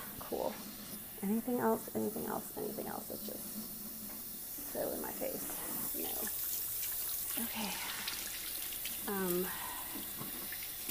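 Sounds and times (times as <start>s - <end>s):
speech: 0.3s - 3.8s, 4.7s - 6.4s, 7.4s - 8.0s, 9.0s - 10.4s
cola poured out down a sink: 2.8s - 10.8s.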